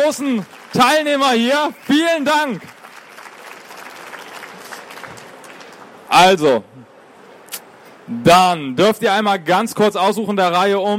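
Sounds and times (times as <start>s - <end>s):
speech: 0.0s - 2.8s, 6.1s - 6.9s, 8.1s - 10.9s
audience applause: 0.0s - 6.1s.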